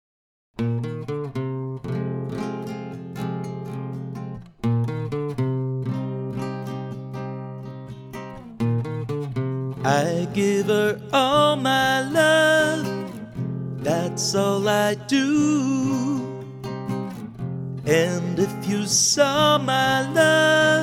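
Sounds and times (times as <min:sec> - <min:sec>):
acoustic music: 0:00.6 - 0:20.8.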